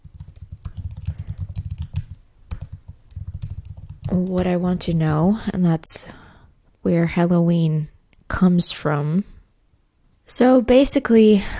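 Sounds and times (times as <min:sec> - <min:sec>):
typing a search on a computer keyboard: 0:00.0 - 0:04.6
speech: 0:04.1 - 0:06.2, 0:06.8 - 0:09.3, 0:10.3 - 0:11.5.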